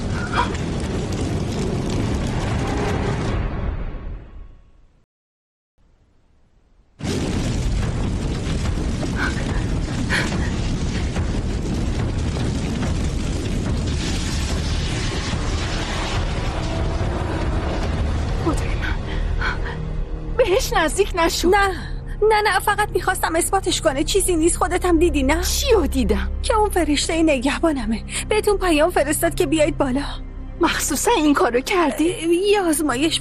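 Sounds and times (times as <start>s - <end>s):
fire blazing with crackling: 0.0s - 4.2s, 6.9s - 21.9s
booming explosions in a fire: 0.0s - 4.3s, 7.0s - 19.8s
speech: 20.7s - 33.2s.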